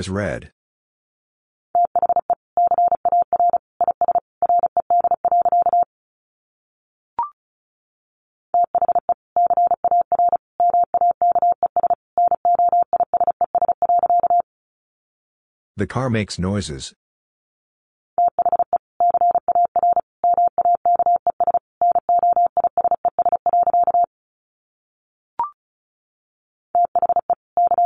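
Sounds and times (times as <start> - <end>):
speech: 0.0 - 0.6, 15.8 - 17.0
Morse code tones at 35 words per minute: 1.8 - 5.9, 8.6 - 14.4, 18.2 - 24.1, 26.8 - 27.8.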